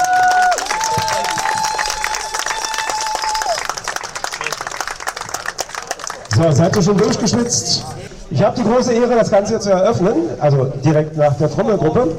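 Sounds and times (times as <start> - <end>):
crowd applause: 0.0 - 7.5
speech: 6.4 - 12.1.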